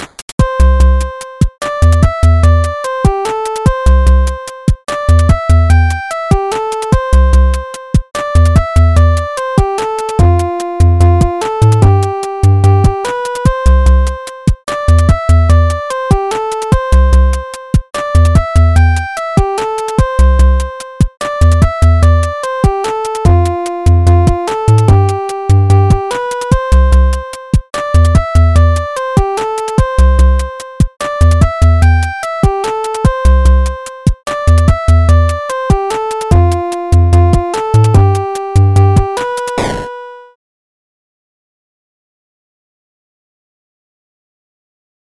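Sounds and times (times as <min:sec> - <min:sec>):
chiptune music: 0:00.4 - 0:40.4.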